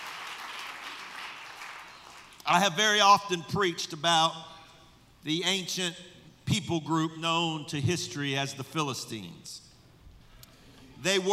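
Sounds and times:
audience hand clap of praise: 0.0s - 2.4s
speech: 2.5s - 4.5s, 5.2s - 9.7s, 11.0s - 11.3s.

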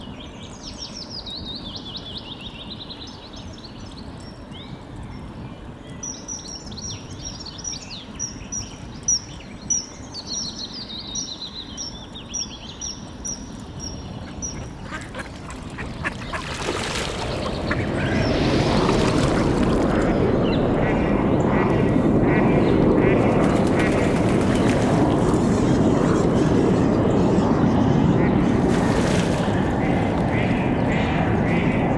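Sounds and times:
birds chirping at a forest pond: 12.2s - 31.9s
steady low rumble: 17.1s - 31.9s.

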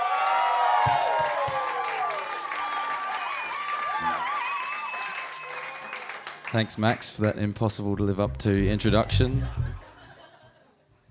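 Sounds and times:
audience applause: 0.0s - 6.6s
speech: 0.9s - 1.2s, 6.5s - 9.6s
laughter: 8.8s - 10.8s.

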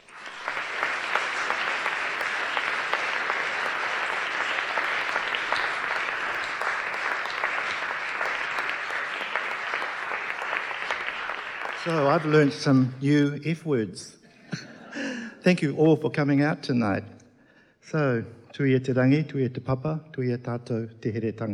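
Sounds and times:
audience applause welcoming author Witi Ihimaera at a book event: 0.0s - 12.9s
speech: 11.9s - 14.7s, 15.4s - 17.2s, 17.9s - 21.5s.

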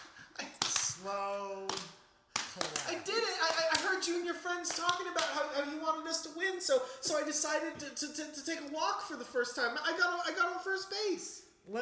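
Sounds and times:
slow clap: 0.0s - 5.4s
speech: 1.0s - 2.0s, 2.6s - 11.8s.

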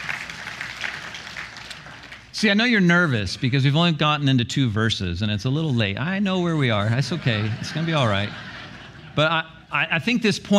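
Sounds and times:
audience clapping: 0.0s - 2.4s
speech: 2.4s - 8.5s, 9.2s - 10.5s
laughter: 6.8s - 9.9s.

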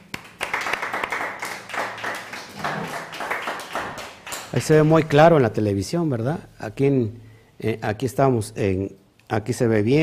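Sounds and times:
strong applause: 0.0s - 4.9s
speech: 4.5s - 10.0s.

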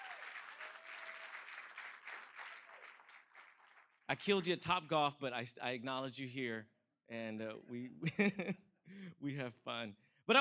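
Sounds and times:
audience applause: 0.0s - 4.3s
speech: 4.1s - 10.3s
laughter: 8.0s - 8.6s.

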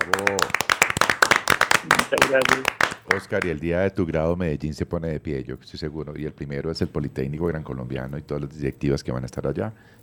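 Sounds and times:
hand clapping: 0.0s - 3.6s
speech: 2.1s - 10.0s.

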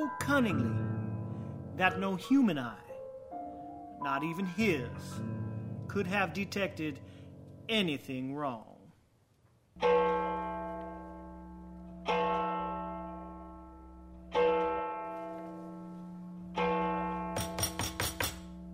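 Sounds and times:
speech: 0.0s - 0.9s, 1.8s - 2.8s, 4.0s - 7.0s, 7.7s - 8.7s, 9.8s - 10.1s
clock striking four o'clock: 9.8s - 15.3s, 16.2s - 18.7s.

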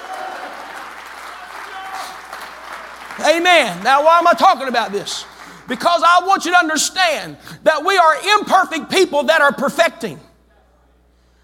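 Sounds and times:
audience clapping: 0.0s - 6.3s
speech: 3.2s - 10.3s.

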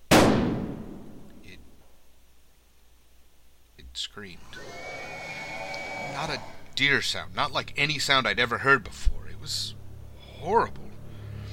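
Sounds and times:
rifle shot fired at a deer: 0.1s - 1.3s
speech: 4.0s - 4.8s, 6.0s - 9.8s, 10.4s - 10.9s.

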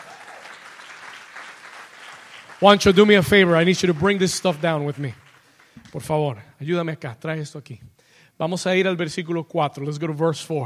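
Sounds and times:
audience applause: 0.0s - 5.8s
speech: 2.6s - 5.2s, 5.9s - 10.6s.

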